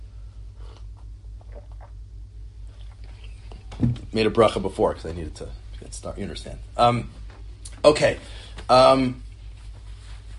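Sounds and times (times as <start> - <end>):
sipping coffee: 0.6 - 2.0
speech: 3.8 - 7.2, 7.8 - 9.2.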